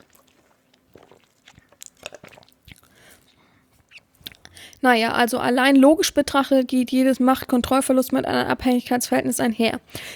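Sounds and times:
person sipping a drink and swallowing: 0.0 - 4.8
speech: 4.8 - 10.1.

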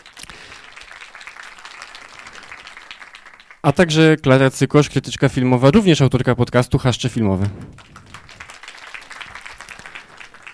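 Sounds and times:
audience applause: 0.0 - 3.7, 7.4 - 10.5
speech: 3.6 - 8.0.

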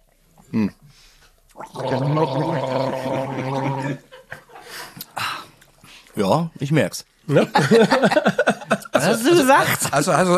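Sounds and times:
speech: 0.5 - 0.8, 1.6 - 4.1, 6.2 - 10.3
people gargling a drink while tasting it: 1.6 - 5.4
laughter: 2.2 - 5.0, 7.4 - 10.1.

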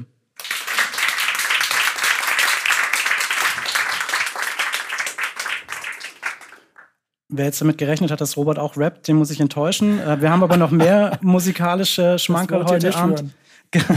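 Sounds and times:
crowd applause: 0.4 - 6.9
speech: 7.3 - 13.9
laughter: 9.8 - 11.7, 13.8 - 13.9.

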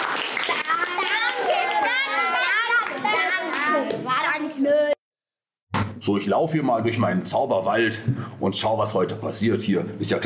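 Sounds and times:
children applauding: 0.0 - 4.0
speech: 6.0 - 10.2.

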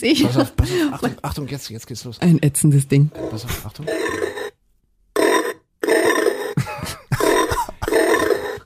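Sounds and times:
speech: 0.0 - 4.5
novelty fridge diet pig gadget noise: 3.1 - 4.6, 5.2 - 6.6, 7.2 - 8.6
laughter: 6.6 - 8.0.

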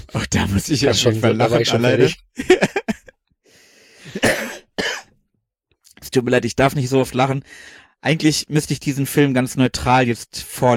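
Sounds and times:
speech: 0.1 - 2.7, 6.1 - 10.7
laughter: 1.6 - 3.1
wheezy strained breath: 3.4 - 4.2
person coughing: 4.0 - 5.1.

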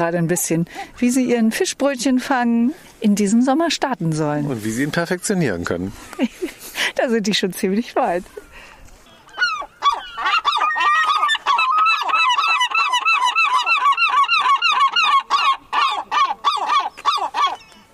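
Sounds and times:
speech: 0.0 - 8.4
seagulls calling with harsh squawks and yelps: 9.2 - 17.9.

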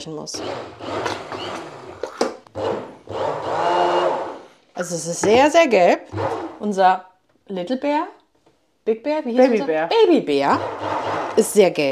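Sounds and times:
speech: 0.0 - 1.7, 4.8 - 8.2, 8.8 - 10.8, 11.4 - 11.9
blender puréeing hot soup: 0.0 - 4.7, 5.4 - 6.8, 10.3 - 11.9.

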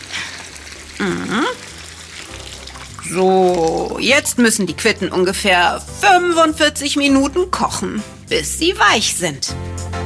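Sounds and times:
water poured into a cooking pot: 0.0 - 5.2
speech: 1.0 - 1.6, 3.0 - 9.9.

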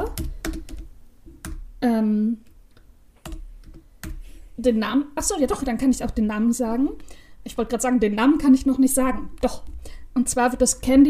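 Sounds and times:
typing on a computer keyboard while writing a note: 0.1 - 1.6
speech: 1.8 - 2.5, 4.6 - 11.0.

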